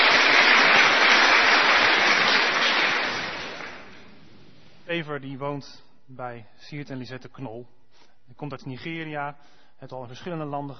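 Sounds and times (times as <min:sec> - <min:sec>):
audience applause: 0:00.0 - 0:04.1
speech: 0:05.0 - 0:10.7.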